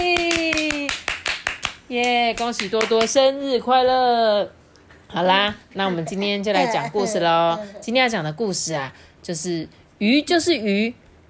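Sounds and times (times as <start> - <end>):
clapping: 0.0 - 3.2
speech: 1.9 - 11.0.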